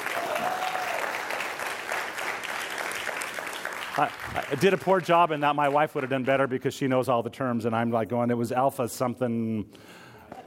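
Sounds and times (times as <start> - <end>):
audience applause: 0.0 - 6.6
speech: 4.0 - 10.0.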